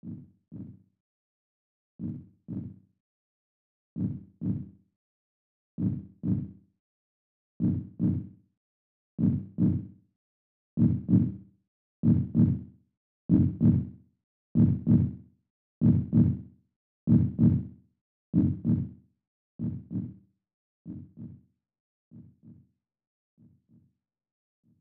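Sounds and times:
heartbeat: 2.0 - 2.7, 4.0 - 4.7, 5.8 - 6.5, 7.6 - 8.3, 9.2 - 9.8, 10.8 - 11.3, 12.0 - 12.6, 13.3 - 13.8, 14.6 - 15.1, 15.8 - 16.4, 17.1 - 17.6, 18.4 - 18.9, 19.6 - 20.1.

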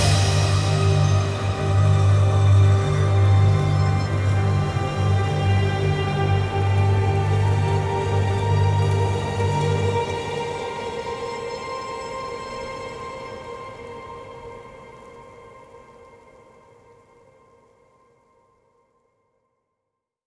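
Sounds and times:
rainfall: 0.0 - 10.8.

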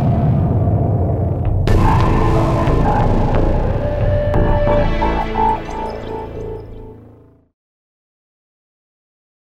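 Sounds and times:
chrome ambient atmosphere: 0.0 - 7.5.

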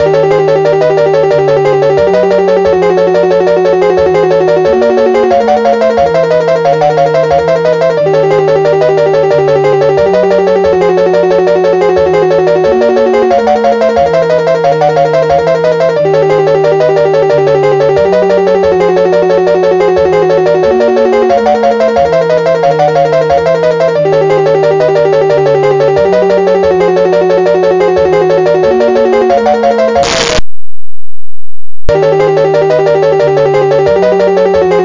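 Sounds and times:
8-bit theme music: 0.0 - 30.6, 31.8 - 34.8.

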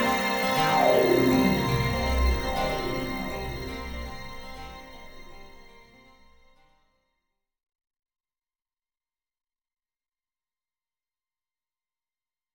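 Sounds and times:
cinematic strings: 0.0 - 6.4.

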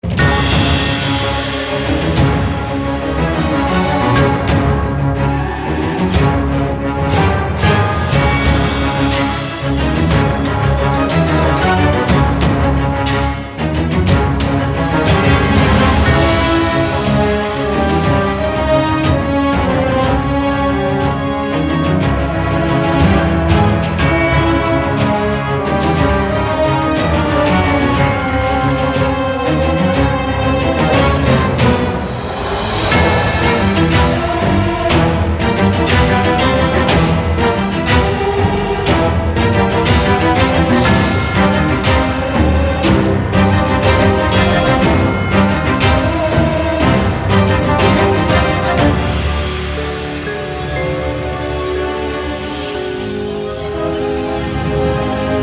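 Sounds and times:
main music: 0.0 - 55.4.

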